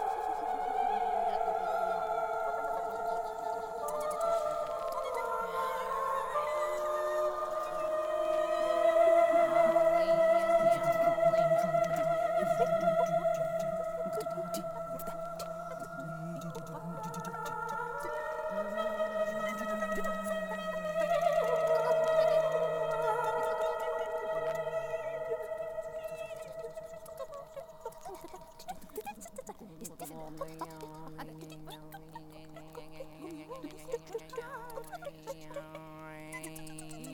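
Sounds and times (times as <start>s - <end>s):
very scary sounds: 0.0s - 28.5s.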